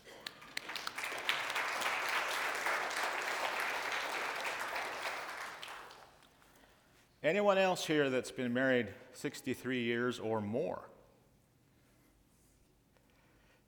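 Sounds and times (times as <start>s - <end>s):
audience applause: 0.0s - 6.2s
speech: 7.2s - 10.9s.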